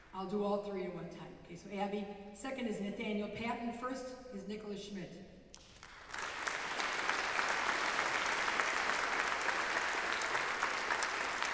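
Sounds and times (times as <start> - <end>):
speech: 0.2 - 5.4
audience applause: 5.8 - 11.5.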